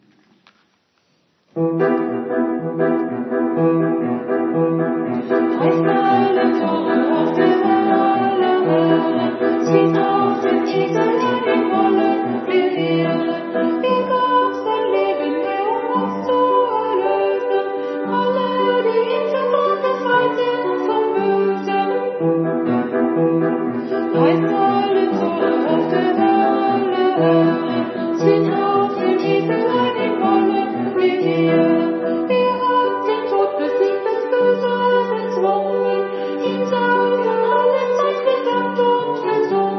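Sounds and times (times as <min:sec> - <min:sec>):
piano: 0:01.5 - 0:39.7.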